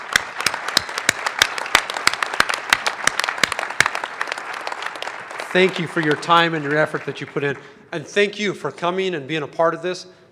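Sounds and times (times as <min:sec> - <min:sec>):
audience applause: 0:00.0 - 0:07.7
speech: 0:05.5 - 0:10.2.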